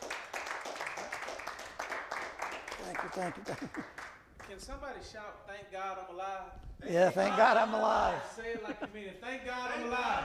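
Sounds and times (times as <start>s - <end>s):
audience hand clap: 0.0s - 4.6s
laughter: 2.8s - 4.0s, 6.9s - 9.1s
speech: 2.8s - 10.2s.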